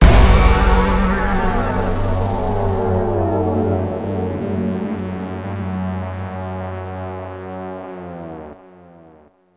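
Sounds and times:
musical ending sting: 0.0 - 5.9.

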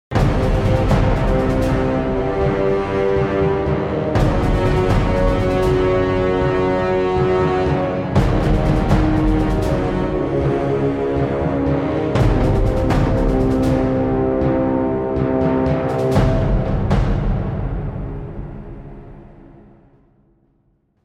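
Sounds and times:
intense battle music: 0.1 - 20.1.

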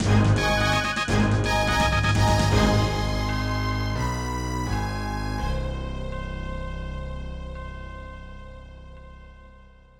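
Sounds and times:
fanfare on Roland SC 55: 0.0 - 5.7.

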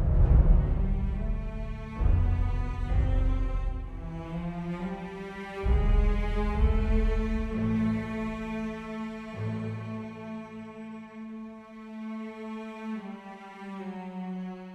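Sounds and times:
world music: 0.1 - 11.4.

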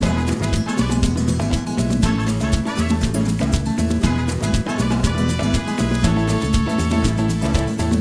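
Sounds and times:
music from a speaker: 0.0 - 7.9.

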